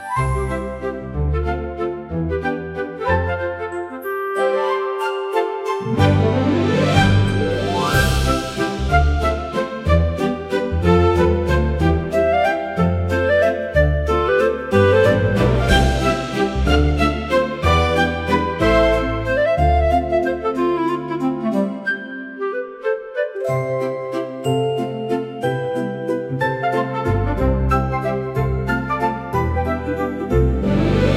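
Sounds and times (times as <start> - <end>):
bright cute fantasy music: 0.0 - 31.1.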